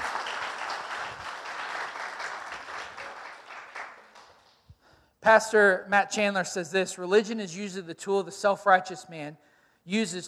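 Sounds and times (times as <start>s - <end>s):
audience clapping: 0.0s - 4.7s
speech: 5.2s - 10.2s.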